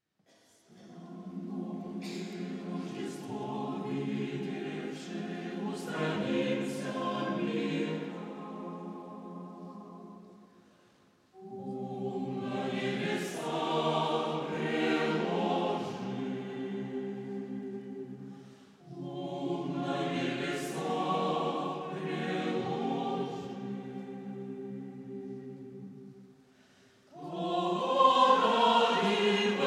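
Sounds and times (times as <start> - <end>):
chamber choir singing: 0.7 - 10.7, 11.3 - 26.4, 27.0 - 29.6.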